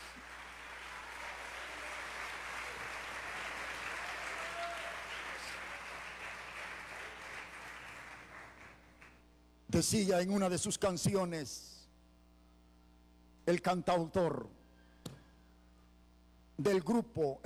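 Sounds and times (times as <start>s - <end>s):
audience applause: 0.0s - 9.2s
speech: 9.8s - 11.7s, 13.5s - 14.6s, 16.6s - 17.4s.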